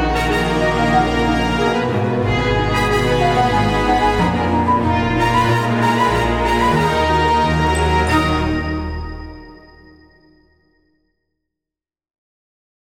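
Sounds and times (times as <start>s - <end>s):
classical music sketch: 0.0s - 10.2s.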